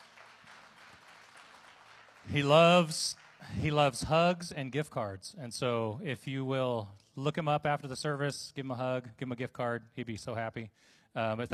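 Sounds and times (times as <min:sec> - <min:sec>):
audience applause: 0:00.0 - 0:03.9
speech: 0:02.3 - 0:11.5.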